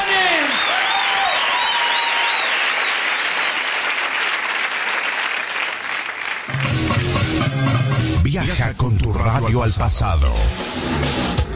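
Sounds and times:
applause: 0.0s - 7.2s
speech: 8.5s - 11.4s.

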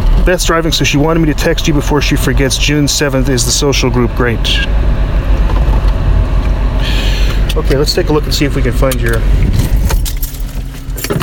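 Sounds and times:
steady low rumble: 0.0s - 11.2s
speech: 0.2s - 5.5s, 7.6s - 9.6s
keys jangling: 9.0s - 11.2s.

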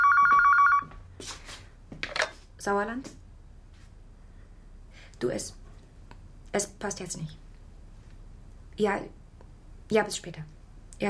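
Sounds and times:
telephone bell ringing: 0.0s - 1.0s
speech: 2.6s - 3.2s, 5.2s - 5.6s, 6.6s - 7.4s, 8.8s - 9.2s, 9.9s - 11.0s.

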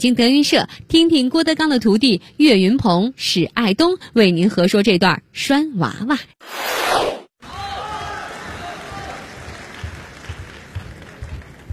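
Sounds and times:
speech: 0.0s - 7.6s
audience applause at a crosstalk comedy show in Beijing: 7.7s - 11.7s.

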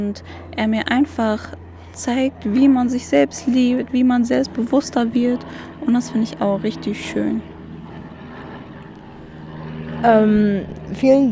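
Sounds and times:
speech: 0.0s - 7.5s, 10.0s - 11.3s
airplanes flying overhead: 0.0s - 11.3s.

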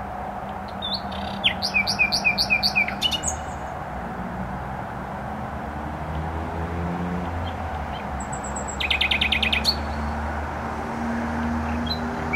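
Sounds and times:
continuous traffic roar: 0.0s - 12.3s
nightingale song: 0.6s - 3.8s, 7.2s - 10.3s, 11.6s - 12.3s.

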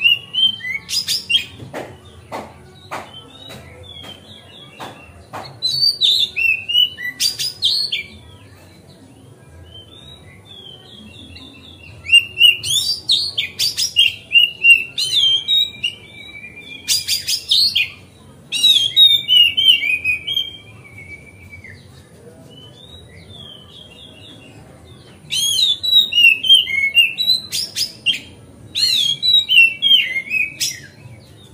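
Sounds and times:
Oriental magpie-robin whistling song: 0.0s - 1.6s, 5.6s - 8.1s, 9.6s - 22.0s, 25.1s - 31.4s.

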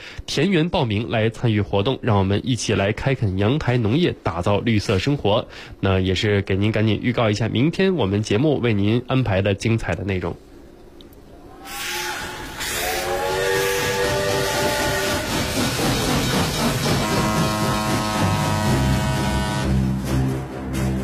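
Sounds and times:
speech: 0.3s - 10.5s
sustained tonal whistle-like pitches: 11.4s - 15.3s
low heavy drone: 11.5s - 21.0s
train rumbling on rails: 11.7s - 21.0s.

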